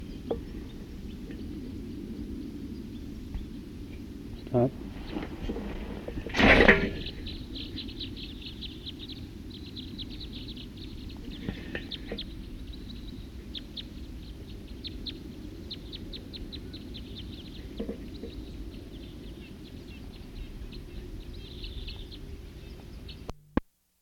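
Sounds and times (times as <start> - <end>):
wild bird calls: 0.0 - 23.3
speech: 4.5 - 4.8.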